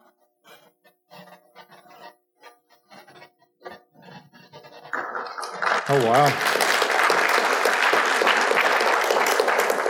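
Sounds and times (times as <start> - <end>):
audience clapping: 4.9 - 9.8
speech: 5.9 - 6.5.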